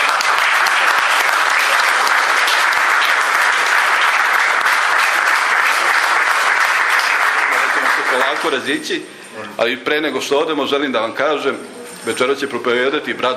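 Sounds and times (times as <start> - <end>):
church congregation applause: 0.0 - 9.0
speech: 8.3 - 13.3.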